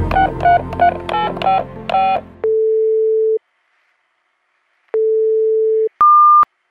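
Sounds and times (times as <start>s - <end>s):
telephone dialing tones: 0.1s - 3.4s, 4.9s - 6.5s.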